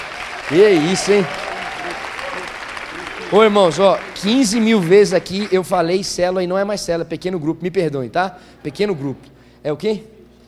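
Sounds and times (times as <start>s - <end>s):
audience applause: 0.0s - 5.7s
speech: 0.5s - 2.0s, 3.3s - 10.1s.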